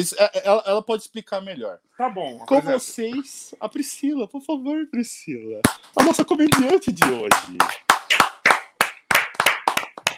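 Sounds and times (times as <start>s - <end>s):
speech: 0.0s - 8.3s
audience clapping: 5.7s - 10.1s.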